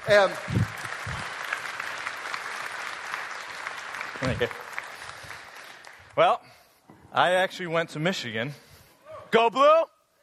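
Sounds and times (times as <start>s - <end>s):
audience clapping: 0.0s - 6.4s
speech: 0.1s - 0.6s, 4.2s - 4.6s, 6.2s - 6.5s, 7.1s - 8.6s, 9.3s - 9.9s.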